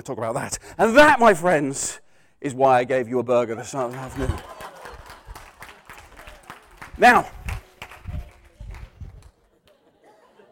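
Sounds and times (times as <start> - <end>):
speech: 0.0 - 4.5, 7.0 - 7.4
laughter: 3.5 - 6.5, 9.3 - 10.5
audience applause: 3.7 - 9.8.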